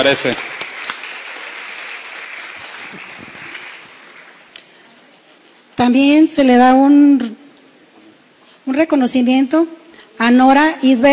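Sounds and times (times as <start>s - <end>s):
speech: 0.0s - 0.6s, 5.8s - 7.4s, 8.7s - 11.1s
audience applause: 0.0s - 4.8s.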